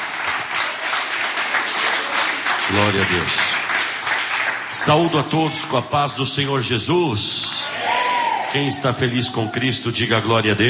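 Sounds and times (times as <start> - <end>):
congregation clapping during a church service: 0.0 - 5.8
speech: 2.7 - 3.6, 4.7 - 7.8, 8.5 - 10.6.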